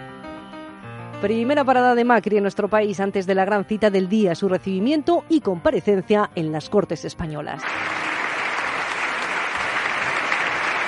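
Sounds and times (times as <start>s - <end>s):
speech: 1.2s - 8.1s
applause in parliament chamber: 7.6s - 10.8s.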